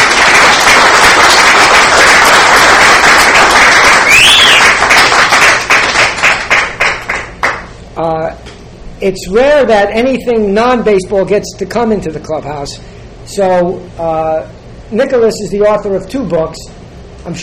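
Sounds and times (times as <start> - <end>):
audience applauding to welcome a guest author into a clubhouse event: 0.0 - 7.7
whistle: 4.0 - 4.8
speech: 8.0 - 8.4, 9.0 - 17.4.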